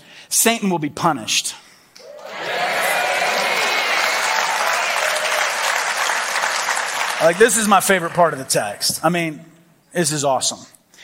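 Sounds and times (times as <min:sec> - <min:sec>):
speech: 0:00.3 - 0:01.6, 0:07.2 - 0:11.0
crowd applauding: 0:02.0 - 0:08.6.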